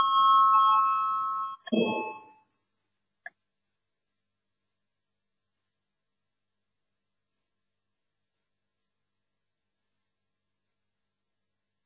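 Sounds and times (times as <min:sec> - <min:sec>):
voting bell ringing in the Latvian parliament chamber: 0:00.0 - 0:02.3.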